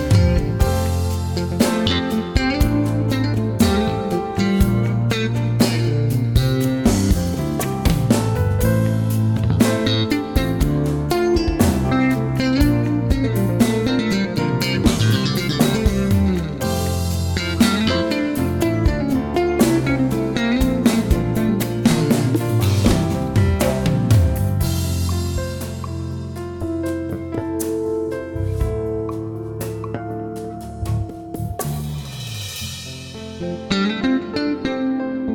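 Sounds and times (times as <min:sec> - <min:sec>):
electric bass solo: 0:00.0 - 0:35.3.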